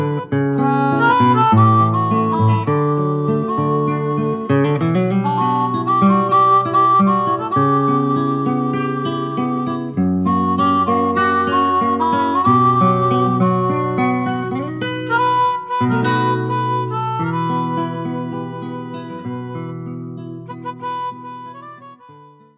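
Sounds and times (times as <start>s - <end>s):
guitar harmonics in B minor: 0.0s - 22.5s.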